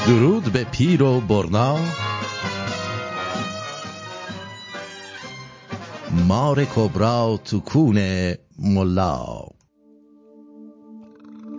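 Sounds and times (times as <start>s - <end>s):
speech: 0.1s - 2.1s, 6.2s - 9.6s
burp: 11.0s - 11.5s.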